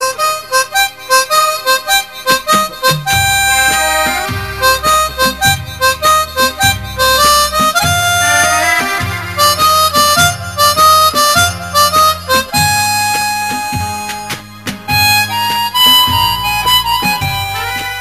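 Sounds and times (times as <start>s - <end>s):
mouth organ playing: 0.0s - 18.0s.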